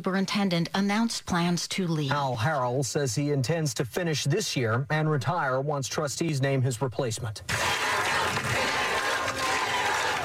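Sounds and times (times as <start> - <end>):
speech: 0.0 - 8.2
crowd cheering outside a meeting: 7.5 - 10.2.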